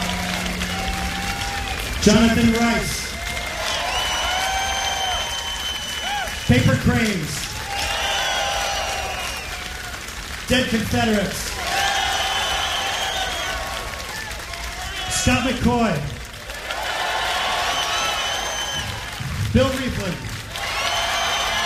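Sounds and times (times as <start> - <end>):
crowd clapping and cheering: 0.0 - 21.6
man announcing over the noise: 1.9 - 3.2, 6.4 - 7.5, 10.5 - 11.6, 14.8 - 16.2, 19.3 - 20.4
speech: 2.0 - 3.0, 6.5 - 7.5, 10.5 - 11.5, 15.2 - 16.2, 19.6 - 20.3
scattered whistles and shouts: 3.6 - 9.9, 11.8 - 15.2, 17.4 - 19.2, 20.6 - 21.6.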